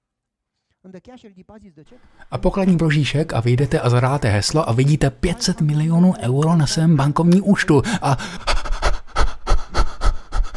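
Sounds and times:
speech: 0.8 - 8.6
person panting and gasping for breath: 2.0 - 2.4, 7.7 - 10.5.

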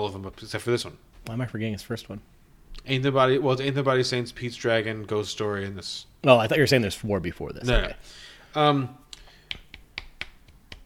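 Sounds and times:
speech: 0.0 - 9.0
hand slapping across a face: 9.1 - 10.8.

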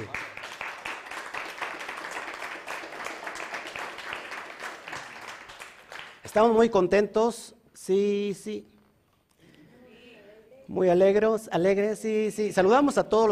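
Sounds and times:
audience applause: 0.0 - 6.3
speech: 6.3 - 8.7, 10.7 - 13.3.

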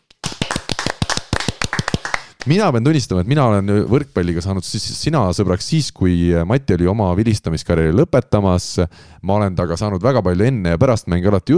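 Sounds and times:
applause: 0.1 - 2.6
speech: 2.4 - 11.5.

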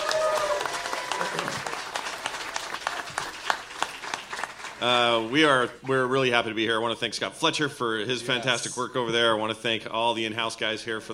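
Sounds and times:
audience applause: 0.0 - 5.6
speech: 4.8 - 11.1.

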